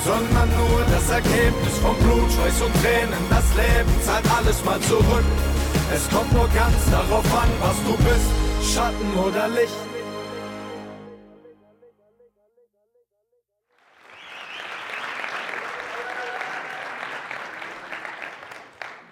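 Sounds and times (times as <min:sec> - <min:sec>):
speech: 0:00.0 - 0:09.9
audience clapping: 0:13.8 - 0:19.1.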